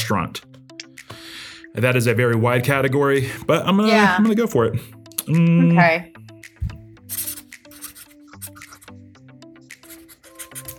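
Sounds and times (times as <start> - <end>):
speech: 0.1 - 0.5, 1.7 - 6.2
pen scratching on paper while handwriting: 7.1 - 9.0, 9.8 - 10.7.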